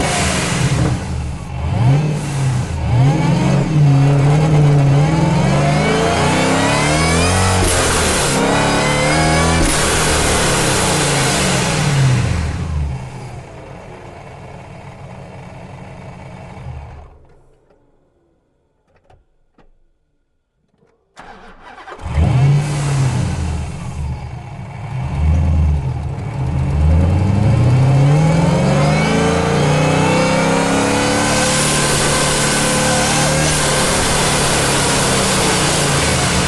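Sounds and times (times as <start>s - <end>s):
2011 Dodge SRT8 driving fast, recorded onboard: 0.0s - 13.6s, 21.2s - 36.4s
2011 Dodge SRT8 engine starting, recorded onboard: 0.0s - 19.8s, 20.7s - 36.4s.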